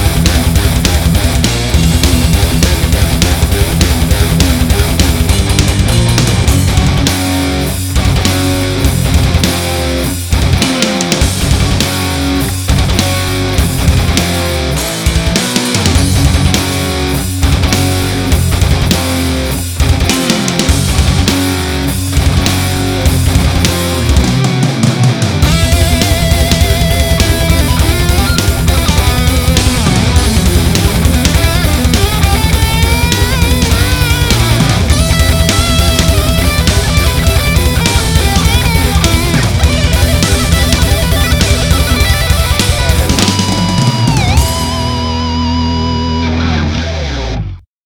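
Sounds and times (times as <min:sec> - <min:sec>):
brutal thrash metal music: 0:00.0 - 0:47.6.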